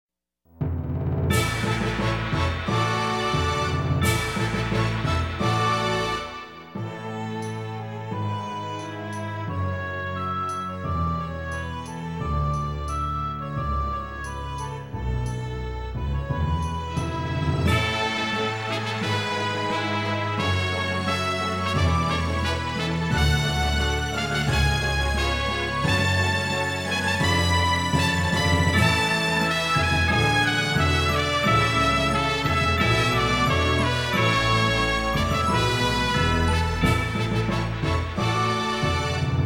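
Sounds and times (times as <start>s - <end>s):
triumphant march: 1.3s - 39.4s.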